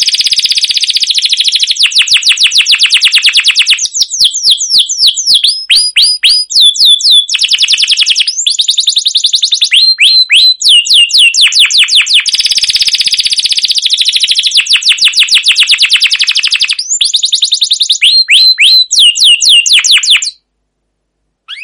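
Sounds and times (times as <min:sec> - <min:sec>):
canary singing rattling trills and whistles: 0:00.0 - 0:20.4.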